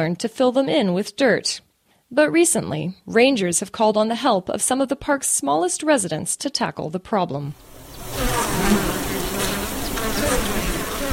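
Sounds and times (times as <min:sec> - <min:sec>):
speech: 0:00.0 - 0:09.0
swarm of bees buzzing: 0:07.6 - 0:11.1.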